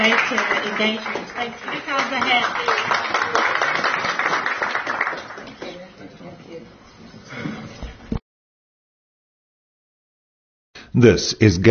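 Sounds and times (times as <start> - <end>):
audience hand clapping for panelists: 0.0 - 6.0
speech: 0.2 - 3.5, 11.0 - 11.6.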